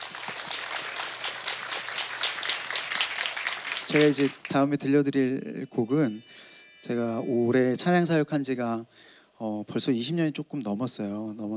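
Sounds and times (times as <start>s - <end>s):
applause: 0.0s - 4.7s
speech: 3.9s - 11.5s.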